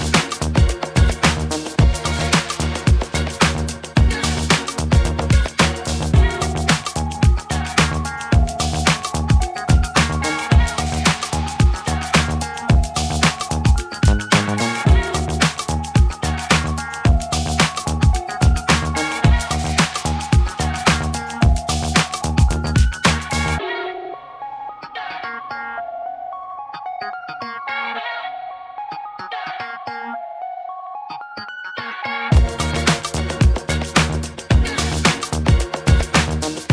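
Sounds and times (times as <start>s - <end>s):
boogie music: 0.0s - 23.6s, 32.1s - 36.7s.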